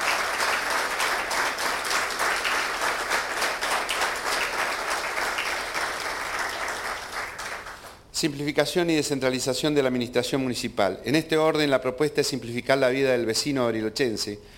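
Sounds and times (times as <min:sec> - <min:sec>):
audience applause: 0:00.0 - 0:08.0
speech: 0:08.2 - 0:14.5.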